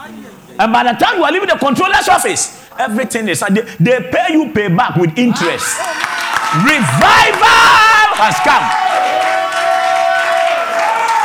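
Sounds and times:
speech: 0.6 - 8.8
audience clapping: 5.6 - 11.2.

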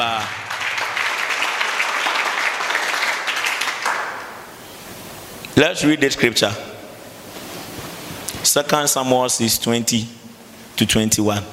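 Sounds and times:
audience clapping: 0.0 - 4.6
speech: 5.6 - 6.7, 8.5 - 10.2, 10.8 - 11.5.

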